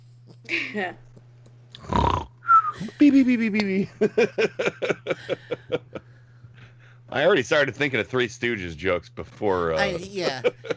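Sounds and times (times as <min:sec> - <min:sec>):
speech: 0:00.5 - 0:01.1, 0:02.8 - 0:06.0, 0:07.1 - 0:10.7
snoring: 0:01.8 - 0:02.3
laughter: 0:02.8 - 0:06.2, 0:09.8 - 0:10.7.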